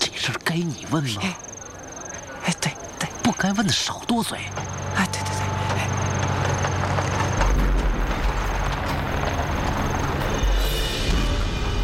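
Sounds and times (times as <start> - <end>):
speech: 0.2 - 1.5, 3.3 - 4.8
truck driving past: 4.6 - 11.8.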